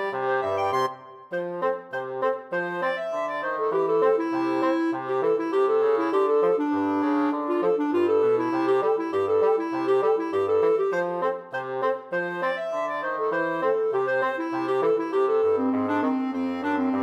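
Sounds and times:
bassoon: 0:00.0 - 0:17.0
clarinet: 0:00.0 - 0:17.0.

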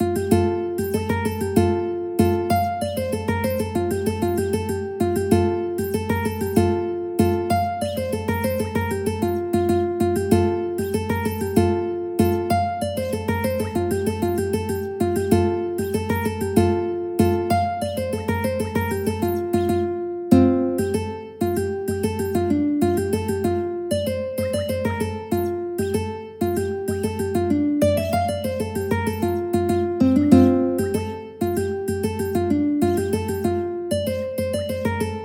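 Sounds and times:
ukulele: 0:00.0 - 0:35.2.

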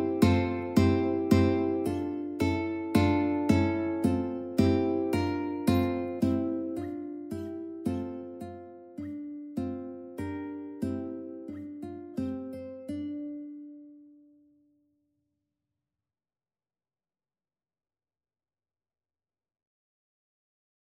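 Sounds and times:
ukulele: 0:00.0 - 0:14.0.

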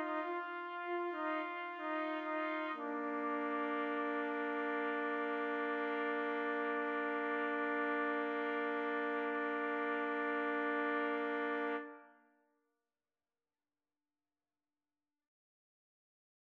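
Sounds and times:
trumpet trio playing: 0:00.0 - 0:12.0.

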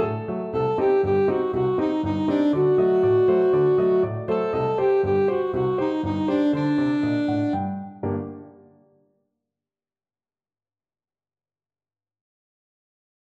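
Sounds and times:
alto saxophone: 0:00.0 - 0:08.5.

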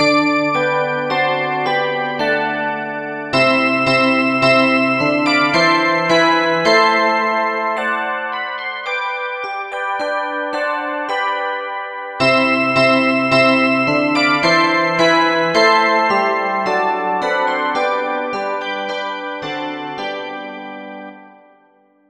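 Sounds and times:
handbells playing a Christmas carol: 0:00.0 - 0:20.9.

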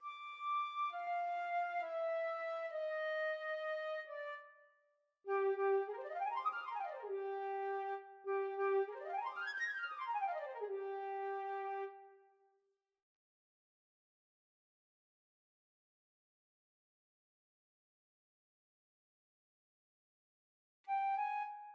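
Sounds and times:
flute: 0:00.0 - 0:04.7, 0:05.3 - 0:12.2, 0:20.9 - 0:21.7.

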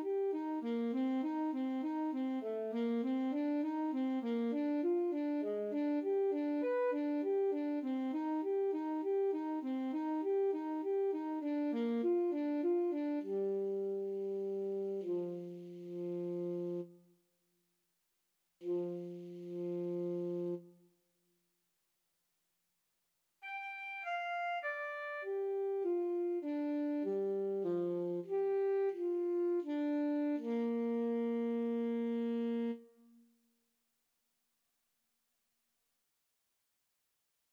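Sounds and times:
alto saxophone melody: 0:00.0 - 0:16.9, 0:18.6 - 0:20.7, 0:23.4 - 0:33.2.

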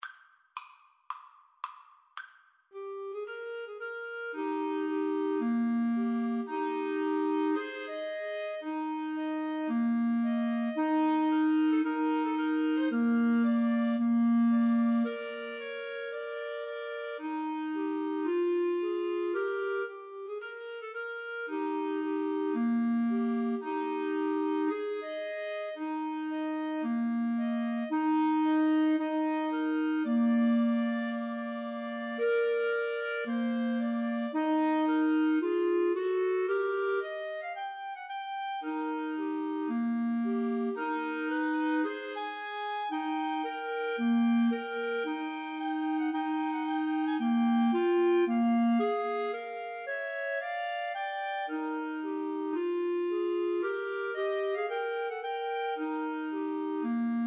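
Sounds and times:
clarinet trio: 0:02.8 - 0:57.2.

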